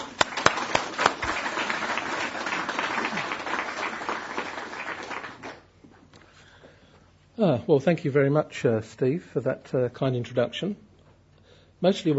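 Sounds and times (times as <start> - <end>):
audience applause welcoming a speaker at the 2008 PBPL annual conference at the Open University: 0.0 - 5.7
speech: 7.4 - 10.9, 11.8 - 12.1.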